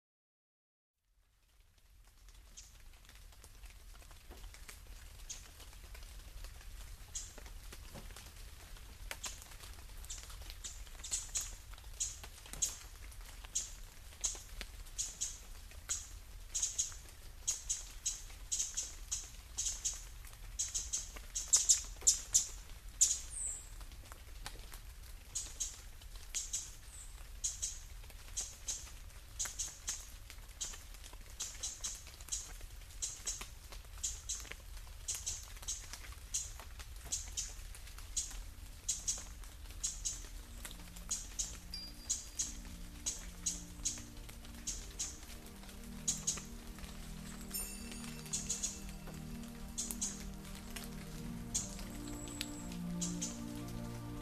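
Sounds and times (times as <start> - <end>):
rain: 1.0 - 54.2.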